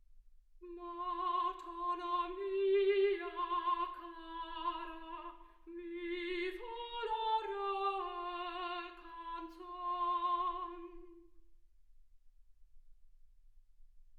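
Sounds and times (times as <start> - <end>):
soprano singing: 0.6 - 11.4.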